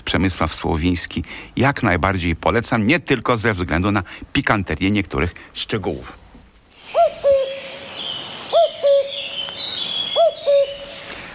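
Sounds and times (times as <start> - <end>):
speech: 0.1 - 6.2
cuckoo calling: 6.8 - 11.3.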